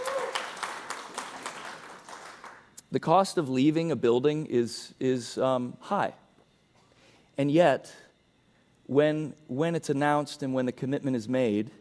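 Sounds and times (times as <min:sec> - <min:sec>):
audience clapping: 0:00.0 - 0:02.7
speech: 0:02.9 - 0:06.2, 0:07.4 - 0:08.0, 0:08.9 - 0:11.7.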